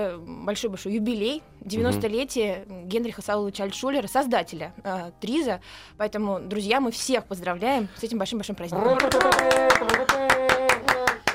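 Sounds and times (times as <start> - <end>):
speech: 0.0 - 10.2
two people clapping hands: 8.9 - 11.3.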